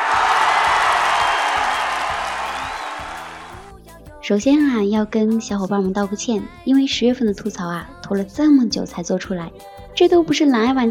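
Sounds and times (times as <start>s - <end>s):
crowd applause: 0.0s - 3.6s
speech: 4.3s - 10.8s.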